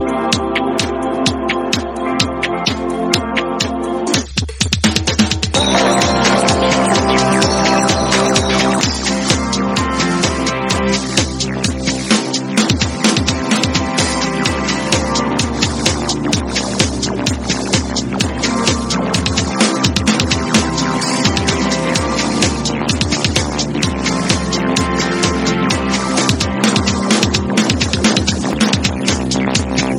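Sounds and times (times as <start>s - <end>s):
2step beat: 0.1s - 29.9s.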